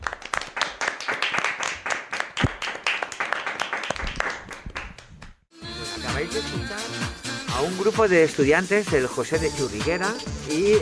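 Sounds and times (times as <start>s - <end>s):
audience applause: 0.0s - 4.9s
speech: 6.3s - 10.8s.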